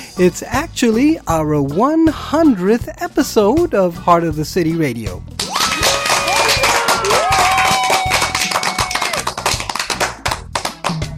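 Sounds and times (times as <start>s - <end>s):
speech: 0.2s - 5.4s
small group applauding: 5.4s - 11.1s.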